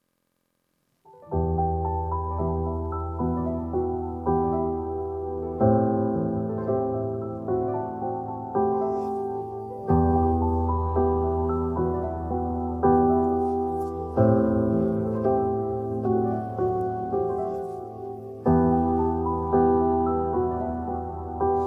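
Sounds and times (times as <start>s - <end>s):
piano music: 1.1s - 21.6s.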